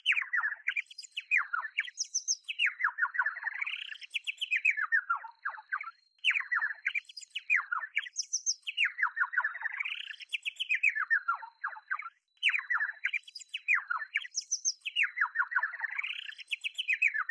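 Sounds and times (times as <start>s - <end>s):
bird singing warbled phrases: 0.0s - 17.3s.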